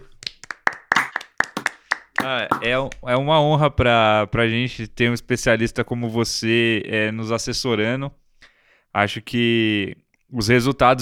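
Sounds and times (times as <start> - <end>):
hand clapping: 0.1 - 2.7
speech: 2.2 - 8.2, 9.0 - 11.0.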